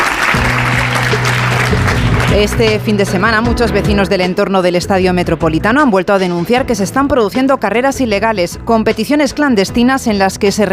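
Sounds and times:
audience applause after a presentation: 0:00.0 - 0:02.8
speech: 0:02.3 - 0:10.7.

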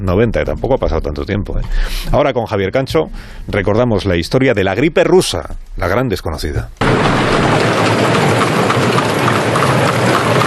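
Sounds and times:
speech: 0:00.0 - 0:08.2
horse-drawn carriages clip-clopping along a street: 0:06.8 - 0:10.4.

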